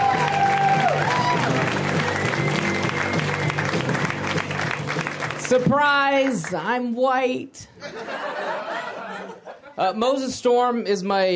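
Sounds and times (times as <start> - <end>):
audience applause for a comedian: 0.0 - 6.5
speech: 5.5 - 8.2, 9.8 - 11.3
laughter: 7.8 - 9.8.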